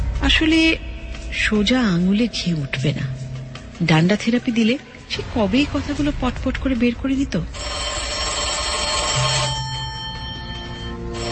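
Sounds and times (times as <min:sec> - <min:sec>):
speech: 0:00.3 - 0:03.2, 0:03.8 - 0:07.8
landline telephone ringing: 0:07.5 - 0:11.2.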